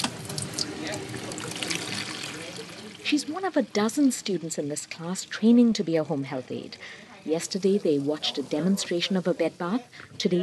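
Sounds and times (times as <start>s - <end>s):
warm water filling a plastic basin: 0.0s - 3.0s
speech: 3.1s - 10.4s.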